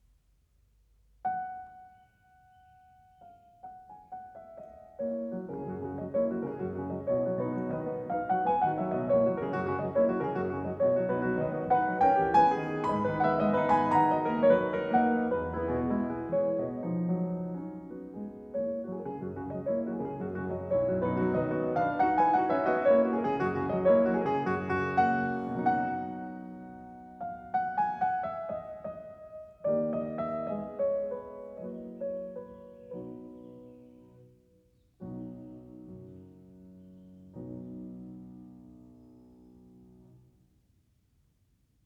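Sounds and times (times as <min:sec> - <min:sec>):
piano prelude in B major: 0:01.2 - 0:40.6.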